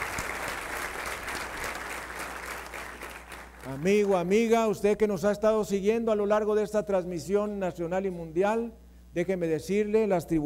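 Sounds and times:
audience applause: 0.0s - 4.0s
speech: 3.6s - 10.4s.

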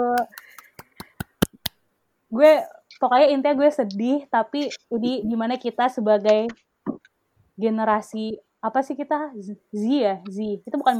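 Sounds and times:
hand clapping applause: 0.2s - 1.8s
speech: 2.3s - 6.7s, 7.6s - 10.9s.

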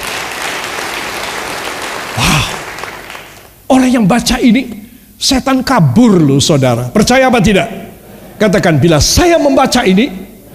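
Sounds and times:
audience applause: 0.0s - 3.6s
speech: 3.7s - 7.8s, 8.4s - 10.2s.

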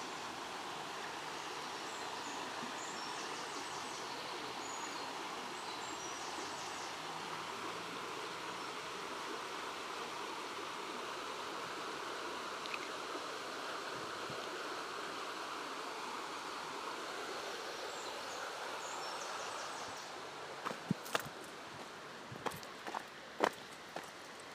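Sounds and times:
fishless stream flowing in shade: 0.0s - 24.5s
footsteps of someone walking beside a shaded stream: 20.6s - 24.2s.

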